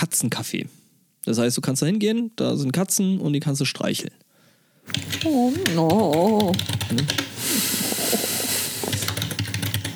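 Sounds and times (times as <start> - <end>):
speech: 0.0 - 4.2, 4.9 - 7.6
typing on a computer keyboard: 4.9 - 7.3, 8.9 - 9.9
steady hiss: 7.1 - 9.9.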